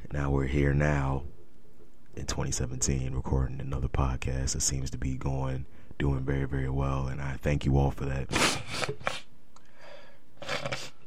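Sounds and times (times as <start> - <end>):
speech: 0.1 - 1.4, 2.2 - 9.2
nose sniffling: 8.3 - 9.3, 10.4 - 11.0.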